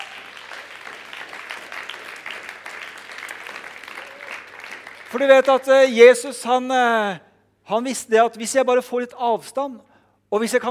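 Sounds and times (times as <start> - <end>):
audience applause: 0.0 - 5.7
speech: 5.1 - 10.7.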